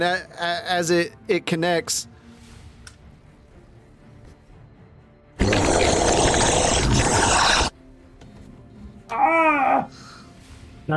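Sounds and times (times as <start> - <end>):
speech: 0.0 - 2.1
monster roar: 5.4 - 7.7
wavering snarl: 5.4 - 7.7.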